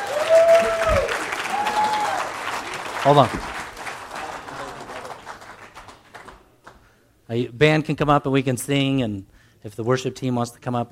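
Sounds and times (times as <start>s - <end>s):
audience applause for a congratulated man: 0.0s - 6.8s
speech: 3.0s - 3.6s, 7.3s - 10.8s.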